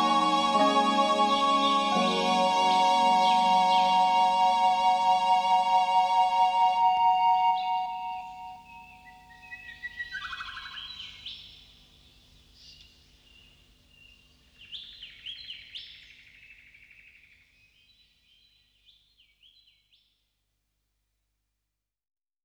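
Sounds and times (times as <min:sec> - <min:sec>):
solo violin: 0:00.0 - 0:08.7
pan flute: 0:00.0 - 0:09.3.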